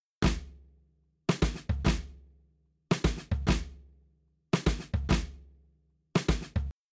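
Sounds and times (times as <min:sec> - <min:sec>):
shuffle drums: 0:00.2 - 0:00.5, 0:01.3 - 0:02.1, 0:02.9 - 0:03.7, 0:04.6 - 0:05.4, 0:06.2 - 0:06.7.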